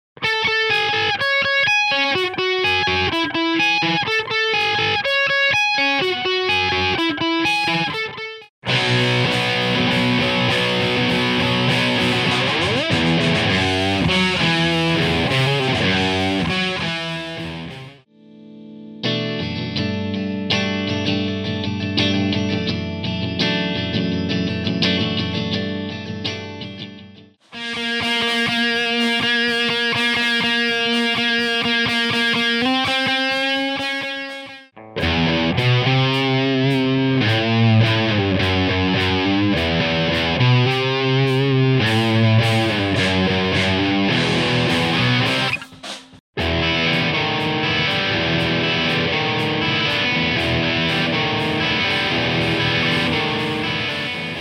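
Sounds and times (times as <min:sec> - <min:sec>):
guitar: 0:00.2 - 0:54.4.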